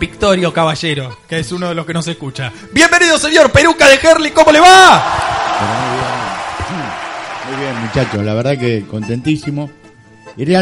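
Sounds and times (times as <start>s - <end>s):
speech: 0.0s - 9.8s, 10.4s - 10.6s
voices shouting and whooping: 4.8s - 8.2s
audience applause: 5.0s - 8.2s.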